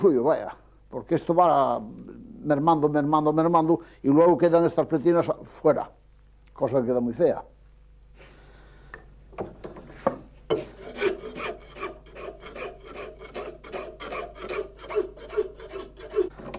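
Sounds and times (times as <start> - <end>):
speech: 0.0 - 6.0, 6.6 - 7.5, 9.4 - 9.6
rasp filing a bull's horn while shaping a knife handle: 10.6 - 16.3.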